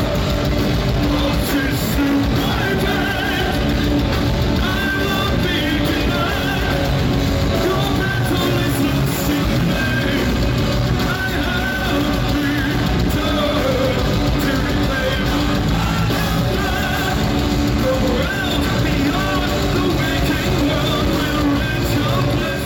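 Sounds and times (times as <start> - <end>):
live band performing a song in a venue: 0.0 - 22.6.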